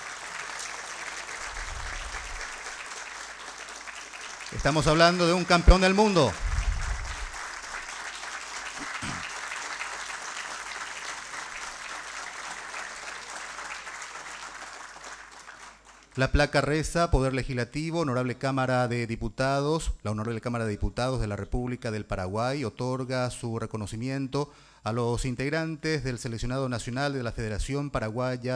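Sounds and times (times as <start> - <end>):
applause in legislative chamber: 0.0 - 16.3
speech: 4.6 - 6.4, 16.2 - 28.5.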